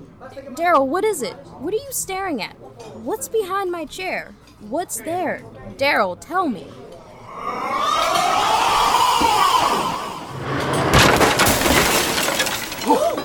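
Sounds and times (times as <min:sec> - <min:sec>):
speech: 0:00.2 - 0:06.8, 0:07.4 - 0:08.1
high-pitched scream: 0:07.2 - 0:10.4
table crashing over: 0:10.3 - 0:13.2
glass shattering: 0:10.7 - 0:13.2.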